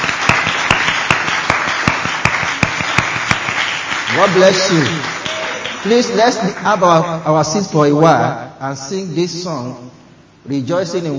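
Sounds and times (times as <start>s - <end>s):
audience clapping: 0.0s - 7.1s
speech: 4.2s - 5.2s, 5.8s - 11.1s.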